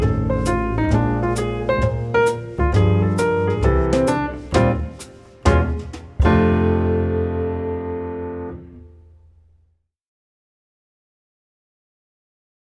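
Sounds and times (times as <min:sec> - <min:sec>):
jazz invention on piano: 0:00.0 - 0:09.5.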